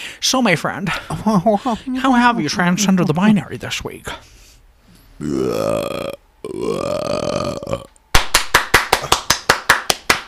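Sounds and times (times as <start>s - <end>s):
speech: 0.3s - 4.4s, 5.2s - 7.9s
long low croaking burp-like vocal sounds: 5.2s - 8.0s
sharp loud crisp hand claps: 8.1s - 10.2s.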